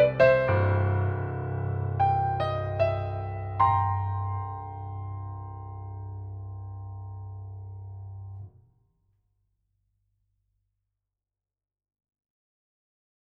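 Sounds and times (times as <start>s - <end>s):
piano: 0.0s - 8.7s.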